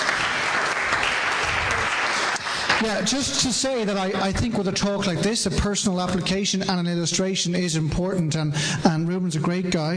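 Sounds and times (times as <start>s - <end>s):
audience applause for a guest speaker: 0.0s - 3.4s
speech: 2.8s - 9.9s.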